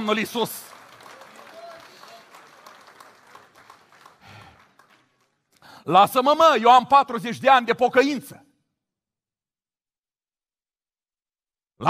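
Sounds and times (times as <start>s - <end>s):
speech: 0.0s - 0.8s, 5.8s - 8.4s
audience applause: 0.0s - 5.5s.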